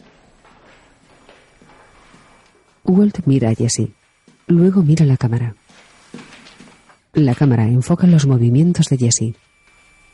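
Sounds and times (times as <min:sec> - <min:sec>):
footsteps of a man walking through a laboratory: 0:00.0 - 0:07.6
speech: 0:02.8 - 0:05.6, 0:07.2 - 0:09.4.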